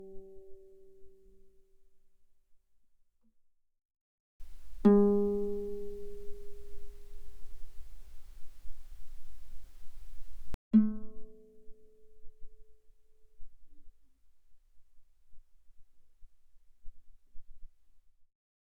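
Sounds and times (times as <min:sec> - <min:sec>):
guitar played pianissimo on the E string: 0:04.4 - 0:10.9.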